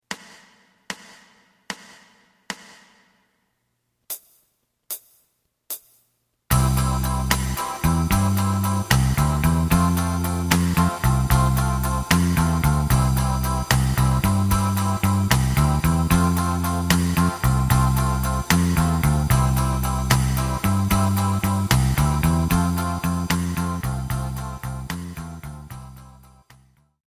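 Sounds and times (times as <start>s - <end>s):
lead guitar: 6.5s - 25.8s.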